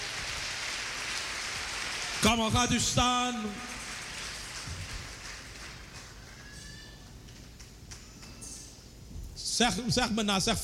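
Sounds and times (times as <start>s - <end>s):
audience applause: 0.0s - 2.5s, 3.6s - 7.0s
speech: 2.2s - 3.8s, 9.6s - 10.6s.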